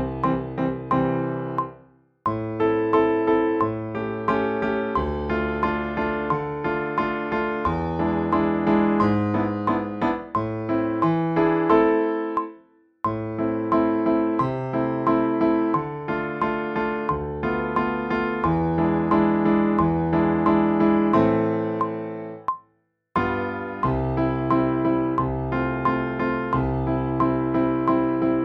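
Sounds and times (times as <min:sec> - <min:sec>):
piano etude: 0:00.0 - 0:22.5, 0:23.2 - 0:28.4.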